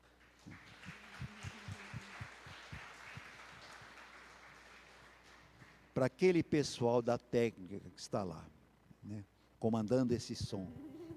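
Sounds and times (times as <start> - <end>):
audience applause: 0.0 - 5.9
speech: 6.0 - 11.0.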